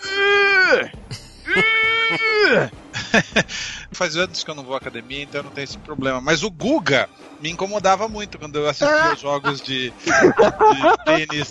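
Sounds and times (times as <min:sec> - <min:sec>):
laughter: 0:01.1 - 0:06.2, 0:07.6 - 0:11.4
person imitating a weightlifter's straining grunts: 0:01.5 - 0:04.0, 0:08.8 - 0:11.4
speech: 0:03.2 - 0:11.4
short sharp exhaled bursts: 0:03.5 - 0:04.0.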